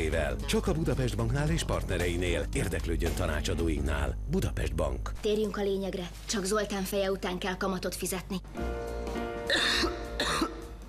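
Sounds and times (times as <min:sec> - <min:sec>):
speech: 0:00.1 - 0:08.8
person coughing: 0:09.5 - 0:10.6.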